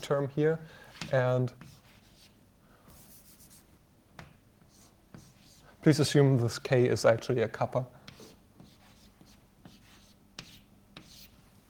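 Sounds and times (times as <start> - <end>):
speech: 0.0 - 1.7, 5.8 - 8.0
writing a formula on a board: 0.9 - 2.4, 4.2 - 5.6, 8.1 - 11.5.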